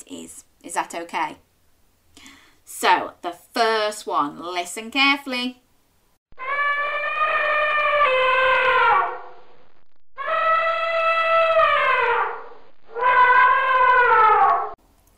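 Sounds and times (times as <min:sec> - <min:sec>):
speech: 0:00.1 - 0:01.5, 0:02.2 - 0:05.6
elephant trumpeting: 0:06.4 - 0:09.2, 0:10.2 - 0:14.7.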